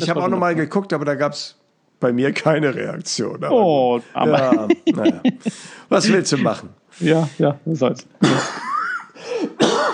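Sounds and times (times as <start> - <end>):
speech: 0.0 - 8.7
laughter: 4.2 - 6.7
person coughing: 8.2 - 9.9.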